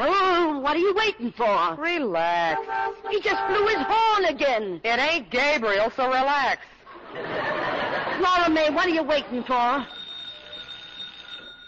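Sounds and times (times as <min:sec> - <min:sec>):
speech: 0:00.7 - 0:07.5, 0:08.2 - 0:10.0
laughter: 0:06.9 - 0:09.7
doorbell ringing: 0:09.8 - 0:11.6.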